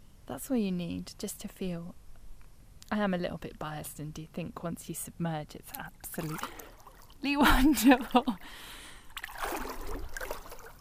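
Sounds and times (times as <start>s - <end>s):
speech: 0.4s - 2.0s, 2.9s - 6.6s, 7.2s - 8.8s
water splashing as someone swims one-handed: 6.0s - 10.7s.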